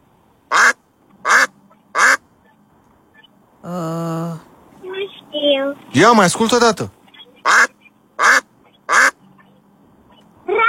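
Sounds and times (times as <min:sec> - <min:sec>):
duck quacking: 0:00.5 - 0:02.2, 0:07.4 - 0:09.2
speech: 0:03.7 - 0:04.0, 0:05.9 - 0:07.0.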